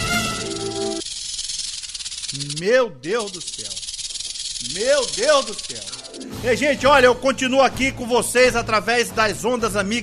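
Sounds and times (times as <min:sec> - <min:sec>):
rattlesnake shaking its rattle: 0:00.0 - 0:06.7
speech: 0:02.3 - 0:03.8, 0:04.6 - 0:10.0.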